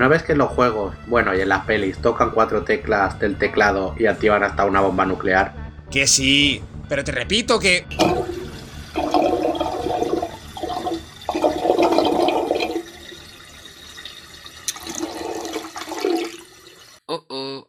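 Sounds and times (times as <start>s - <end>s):
speech: 0.0s - 8.3s
water tank draining: 7.8s - 17.0s.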